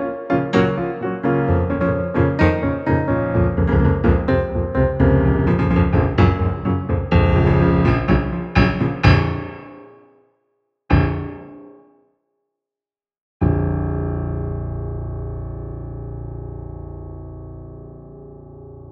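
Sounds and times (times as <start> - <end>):
dark piano music: 0.0 - 10.1, 10.9 - 11.8, 13.4 - 18.9.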